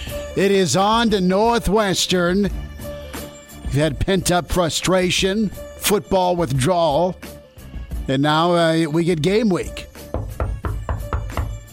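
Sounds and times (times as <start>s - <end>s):
speech: 0.4s - 2.7s, 3.7s - 7.3s, 8.1s - 9.8s
knocking on wood: 10.1s - 11.6s.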